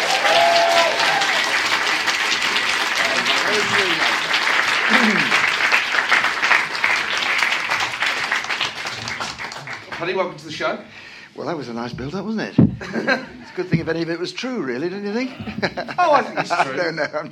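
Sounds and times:
studio audience applause welcoming guest Paddy Ashdown: 0.0 - 10.1
speech: 10.0 - 17.3
laughter: 12.8 - 13.8, 15.2 - 17.3.

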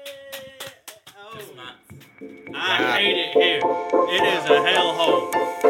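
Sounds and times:
hand clap: 0.0 - 2.3
speech: 1.4 - 5.5.

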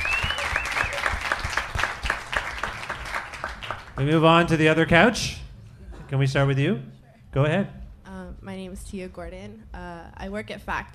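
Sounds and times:
audience applauding a guest: 0.0 - 4.8
speech: 4.0 - 5.4, 6.1 - 7.8, 8.7 - 10.9.

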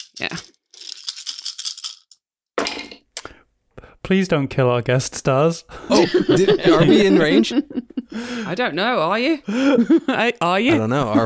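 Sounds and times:
dice rolling: 0.0 - 2.8
speech: 0.2 - 0.6, 4.1 - 11.2
laughter: 5.7 - 8.7, 9.5 - 11.2.

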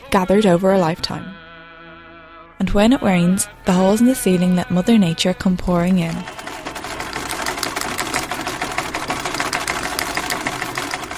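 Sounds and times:
speech: 0.1 - 1.4, 2.6 - 6.4
sewing machine running: 5.6 - 11.1.

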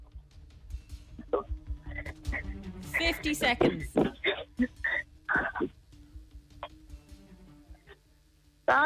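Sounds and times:
television playing loudly: 1.2 - 8.8.

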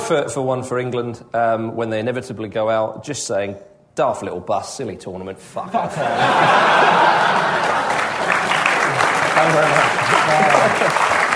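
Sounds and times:
speech: 0.1 - 8.5, 9.4 - 11.2
laughter: 5.7 - 8.3, 10.0 - 11.1
crowd applause: 6.2 - 11.3.

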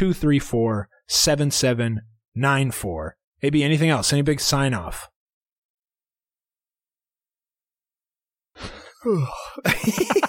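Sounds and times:
speech: 0.0 - 5.1, 8.6 - 10.2
person yawning: 8.6 - 9.7
laughter: 9.6 - 10.2.

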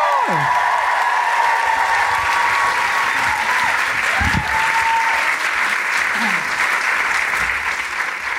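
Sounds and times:
whoops and cheers: 0.0 - 5.5
large audience applause welcoming performer to stage: 0.0 - 8.3.

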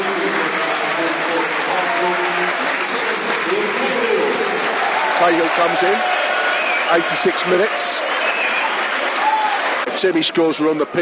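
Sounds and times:
large stadium crowd applause: 0.0 - 11.0
speech: 5.2 - 6.1, 6.9 - 8.3, 10.0 - 11.0.

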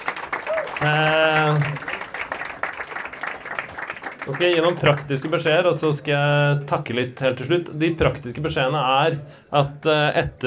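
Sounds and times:
audience applause: 0.0 - 5.6
speech: 0.8 - 1.8, 4.3 - 10.4.

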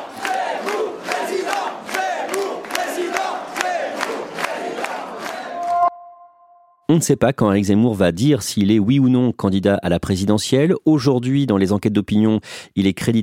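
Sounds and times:
rally crowd chanting a candidate's name: 0.0 - 5.8
speech: 6.9 - 13.2.

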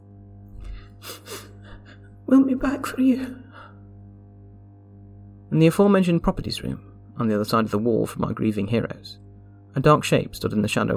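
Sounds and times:
person sniffling while crying: 0.6 - 2.1
speech: 2.3 - 3.4, 5.5 - 9.2, 9.8 - 10.9.

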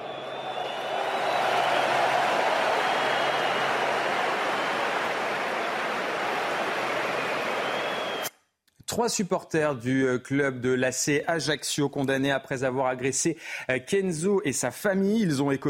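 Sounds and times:
applause: 0.0 - 8.3
speech: 9.0 - 15.6.

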